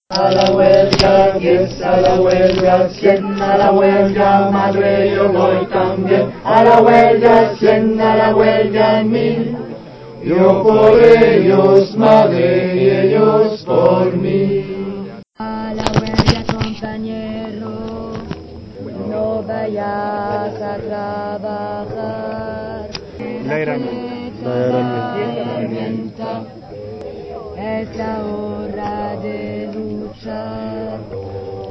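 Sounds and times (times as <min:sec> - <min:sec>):
tenor singing: 0:00.1 - 0:31.7.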